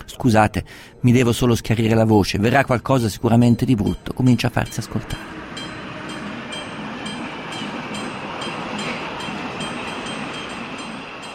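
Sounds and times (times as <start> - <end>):
speech: 0.2 - 5.4
train passing on rails: 3.7 - 11.3.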